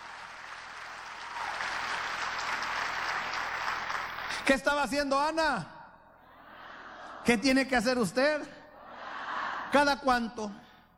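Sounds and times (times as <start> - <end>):
audience applauding: 0.0 - 4.5
speech: 4.5 - 5.8, 7.2 - 8.6, 9.7 - 10.6.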